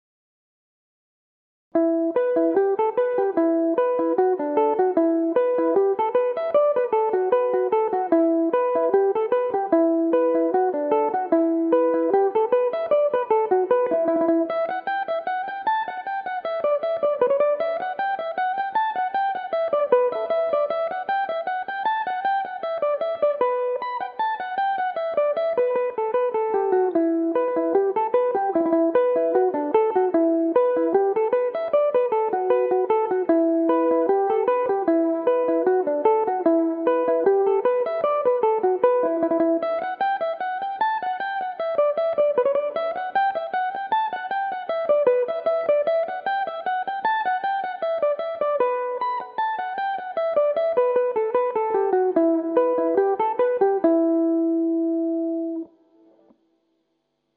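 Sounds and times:
Irish mandolin in E minor: 0:01.8 - 0:56.4.

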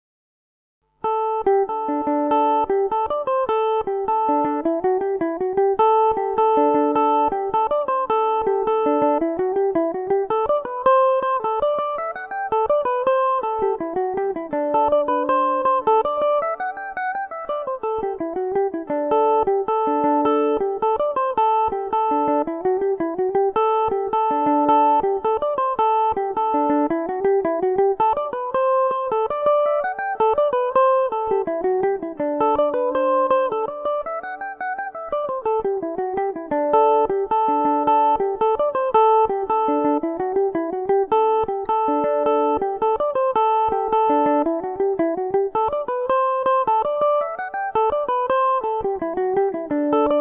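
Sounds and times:
Irish mandolin in D mixolydian: 0:01.0 - 0:50.2.

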